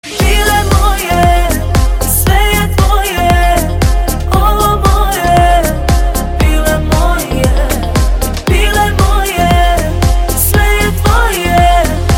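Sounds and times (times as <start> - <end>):
music: 0.0 - 12.1.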